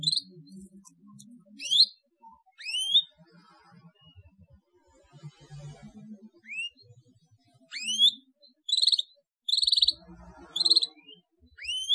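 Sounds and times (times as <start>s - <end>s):
Atlantic canary song: 0.0s - 3.2s, 6.4s - 6.9s, 7.6s - 11.9s.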